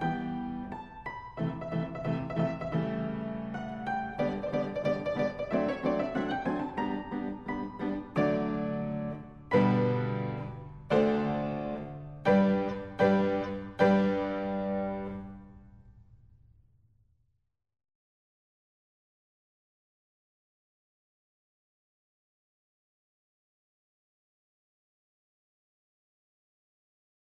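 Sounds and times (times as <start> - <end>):
piano lesson playing: 0.0 - 15.7.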